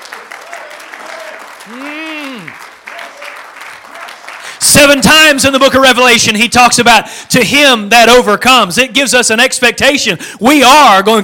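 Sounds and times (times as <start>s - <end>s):
audience clapping hands: 0.0s - 5.7s
speech: 1.7s - 2.7s, 4.7s - 11.2s.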